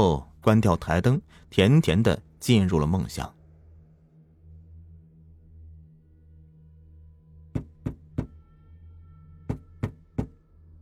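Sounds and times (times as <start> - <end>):
speech: 0.0 - 3.4
sharp knocks: 7.6 - 8.4, 9.5 - 10.4.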